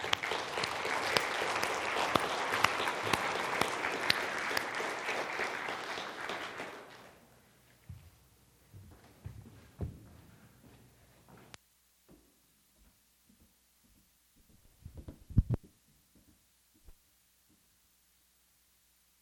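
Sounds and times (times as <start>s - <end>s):
audience applause: 0.0s - 7.2s.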